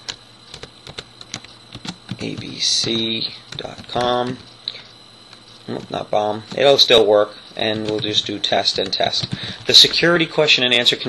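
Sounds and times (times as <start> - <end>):
computer keyboard clicks: 0.1 - 4.5, 7.6 - 10.0
speech: 2.2 - 4.5, 5.7 - 11.0.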